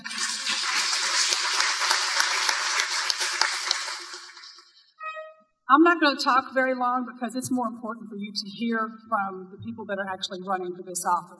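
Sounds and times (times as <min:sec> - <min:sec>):
audience applause at a Democratic Party event: 0:00.0 - 0:04.7
speech: 0:05.7 - 0:11.3.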